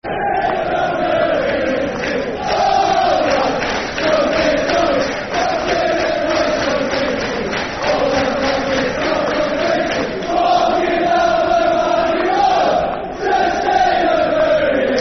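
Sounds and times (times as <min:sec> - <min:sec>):
football crowd chanting: 0:00.0 - 0:15.0.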